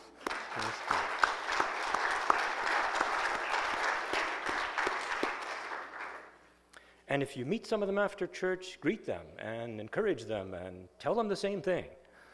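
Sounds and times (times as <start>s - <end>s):
church congregation applauding: 0.0s - 6.4s
speech: 7.1s - 12.0s.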